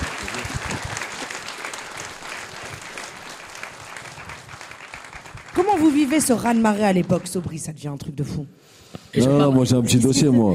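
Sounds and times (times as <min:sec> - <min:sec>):
audience applauding for a singer: 0:00.0 - 0:07.9
speech: 0:05.7 - 0:10.5.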